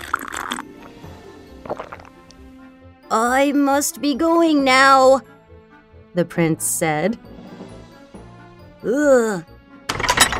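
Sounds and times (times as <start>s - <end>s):
slurping water from a glass: 0.0s - 2.4s
speech: 3.1s - 5.3s, 6.2s - 7.3s, 8.8s - 9.5s.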